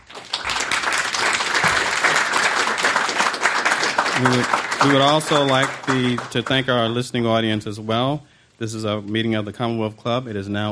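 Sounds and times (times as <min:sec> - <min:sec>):
audience applause at a Commonwealth Club meeting: 0:00.0 - 0:07.0
speech: 0:04.2 - 0:10.7.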